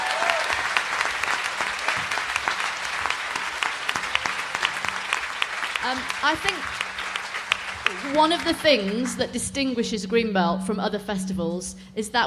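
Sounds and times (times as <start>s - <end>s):
audience applause: 0.0s - 9.4s
speech: 5.9s - 6.8s, 8.0s - 12.2s.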